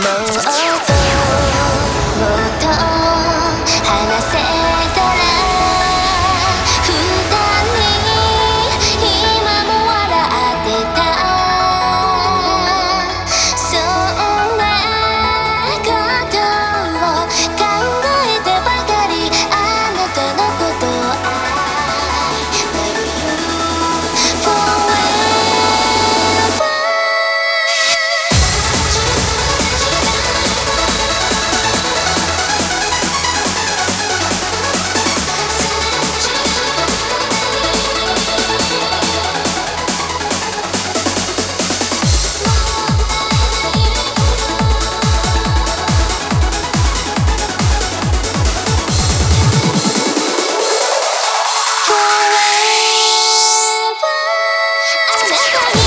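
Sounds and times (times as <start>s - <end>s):
trance music: 0.0s - 55.8s.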